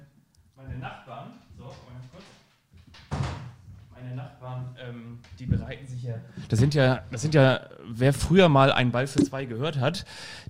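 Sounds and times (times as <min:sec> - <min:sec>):
door being closed: 0:03.0 - 0:03.6
speech: 0:04.8 - 0:10.4.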